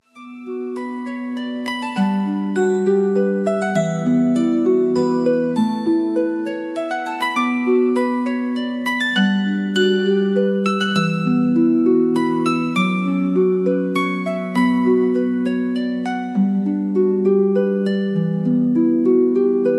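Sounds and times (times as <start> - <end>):
Celtic harp music: 0.0 - 19.7.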